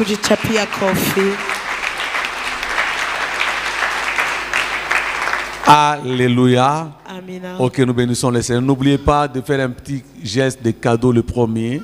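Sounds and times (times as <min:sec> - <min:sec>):
speech: 0:00.0 - 0:01.6, 0:05.6 - 0:11.8
church congregation applauding: 0:00.0 - 0:06.5.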